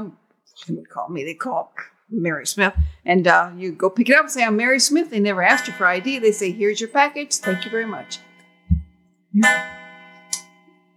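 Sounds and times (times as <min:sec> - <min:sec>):
speech: 0:00.0 - 0:08.3, 0:09.3 - 0:09.8
clock chiming eight o'clock: 0:05.2 - 0:10.9
soft low knock: 0:08.7 - 0:08.9.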